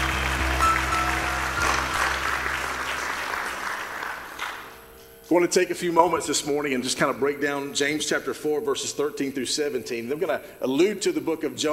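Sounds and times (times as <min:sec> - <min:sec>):
audience clapping and applauding: 0:00.0 - 0:04.9
low sustained organ-like hum: 0:00.0 - 0:08.0
speech: 0:05.3 - 0:11.7.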